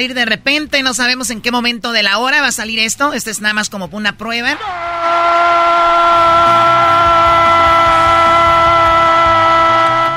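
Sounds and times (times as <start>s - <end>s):
speech: 0.0s - 6.8s
sportscaster's drawn-out goal shout: 4.5s - 10.1s.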